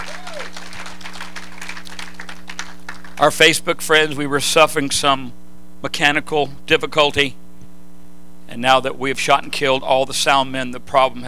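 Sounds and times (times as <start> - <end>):
audience clapping: 0.0 - 3.6
low electrical hum: 0.0 - 11.2
speech: 3.2 - 7.4, 8.5 - 11.2.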